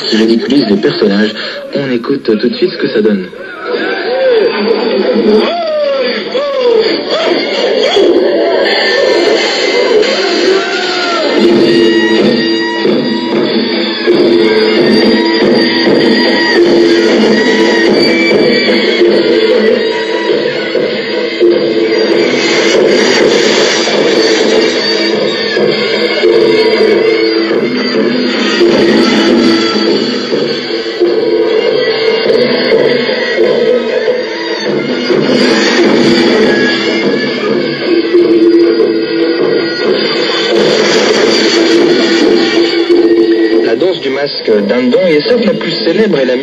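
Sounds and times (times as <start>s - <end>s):
drums for stage dance: 0.0s - 2.2s, 3.3s - 46.4s
speech: 0.0s - 4.0s, 5.2s - 5.7s
audience laughter: 3.6s - 9.7s.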